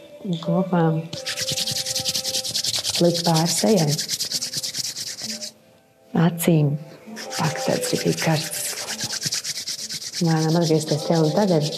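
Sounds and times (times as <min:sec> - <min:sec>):
speech: 0:00.2 - 0:01.4, 0:03.0 - 0:04.2, 0:06.2 - 0:08.6, 0:10.2 - 0:11.7
hands rubbing together: 0:01.2 - 0:05.5, 0:07.2 - 0:11.7.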